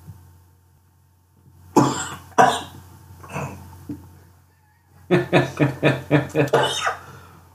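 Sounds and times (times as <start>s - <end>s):
person coughing after a sip went down wrong: 1.8s - 3.6s, 6.4s - 7.0s
laughter: 5.1s - 6.7s.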